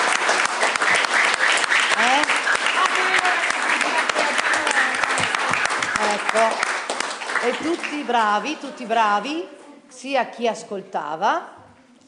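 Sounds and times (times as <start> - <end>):
applause for the teachers: 0.0 - 8.3
speech: 7.4 - 11.6.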